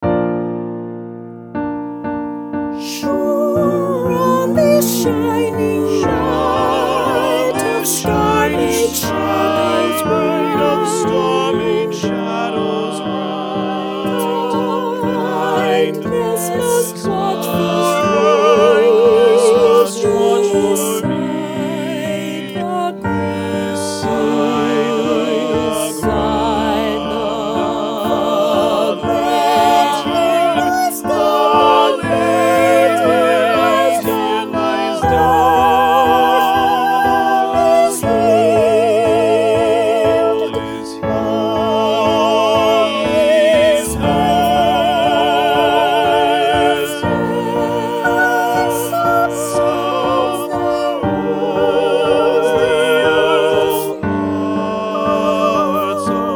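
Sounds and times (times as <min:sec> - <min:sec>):
SATB choir singing: 0:02.0 - 0:56.3.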